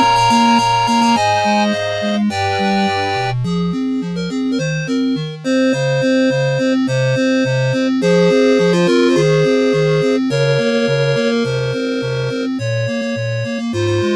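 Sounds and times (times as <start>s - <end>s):
8-bit music: 0.0s - 14.1s.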